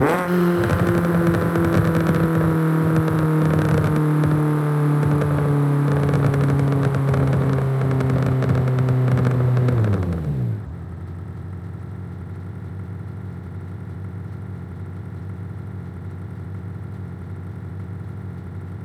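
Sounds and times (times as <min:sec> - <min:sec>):
vehicles throttling off: 0:00.0 - 0:11.4.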